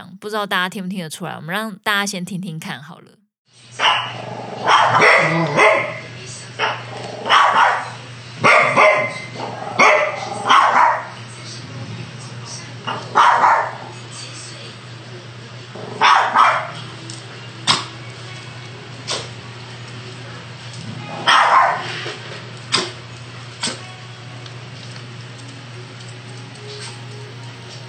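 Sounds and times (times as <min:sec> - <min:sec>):
speech: 0:00.2 - 0:06.0
dachshund and chihuahua barking at each other: 0:03.8 - 0:11.2, 0:12.9 - 0:13.9, 0:15.8 - 0:16.9, 0:21.1 - 0:22.0.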